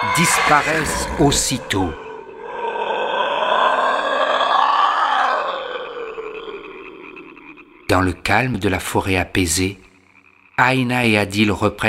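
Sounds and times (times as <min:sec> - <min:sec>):
terrifying creature's raspy roaring wail: 0:00.0 - 0:08.4
speech: 0:00.2 - 0:02.0, 0:07.9 - 0:09.8, 0:10.6 - 0:11.8.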